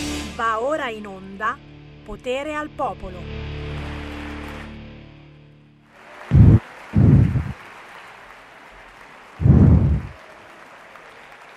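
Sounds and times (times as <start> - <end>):
speech: 0.4 - 3.4
audience applause: 3.8 - 4.8, 5.9 - 11.5.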